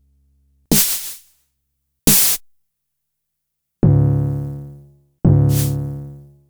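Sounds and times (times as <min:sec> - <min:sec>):
Fricke Schlagzwerg percussion effect: 0:00.7 - 0:01.3, 0:02.1 - 0:02.5, 0:05.3 - 0:05.9.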